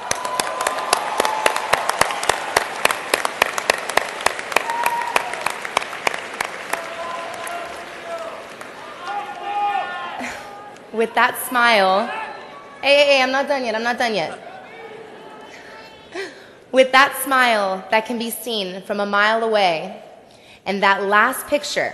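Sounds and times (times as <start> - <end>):
scattered voices and cheers: 0.0 - 3.2, 4.4 - 12.8
graduating class applauding their families: 0.0 - 10.9
speech: 11.0 - 12.2, 12.8 - 14.5, 16.7 - 20.0, 20.6 - 21.9.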